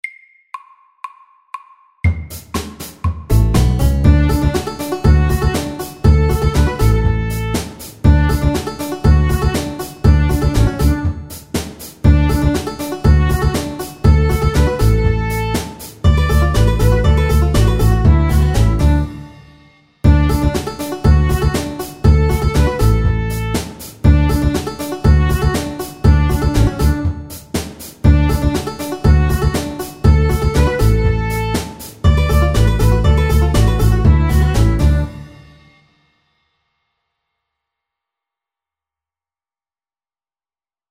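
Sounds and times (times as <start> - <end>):
bluegrass music: 3.3 - 11.4, 12.1 - 19.3, 20.1 - 27.4, 28.0 - 35.3.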